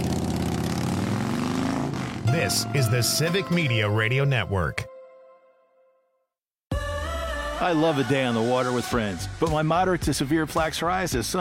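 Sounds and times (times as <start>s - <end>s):
Harley motorcycle engine revving: 0.0s - 2.3s
speech: 2.3s - 4.9s, 7.6s - 11.3s.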